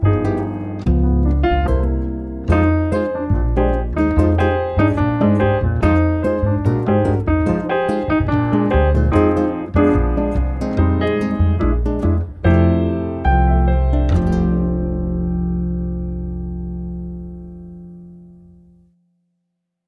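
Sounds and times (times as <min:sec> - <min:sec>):
bossa jazz without drums: 0:00.0 - 0:18.8.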